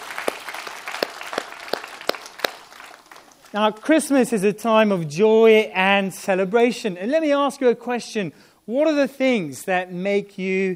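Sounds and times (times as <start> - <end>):
audience applause: 0.0 - 3.9
speech: 3.5 - 10.7.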